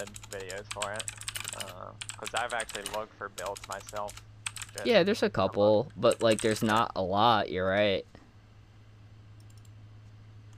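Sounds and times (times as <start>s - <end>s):
typing on a computer keyboard: 0.0s - 4.8s, 6.1s - 6.8s
speech: 0.0s - 8.2s
steady low hum: 0.0s - 10.5s.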